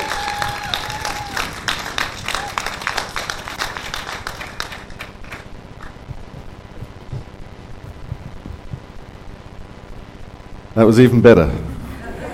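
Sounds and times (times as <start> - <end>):
audience cheering: 0.0 - 5.4
audience clapping: 0.0 - 8.6
speech: 10.8 - 11.7.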